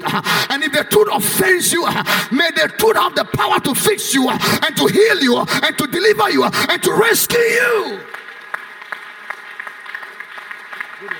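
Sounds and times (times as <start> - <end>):
speech: 0.2 - 8.2
audience clapping: 6.4 - 11.1.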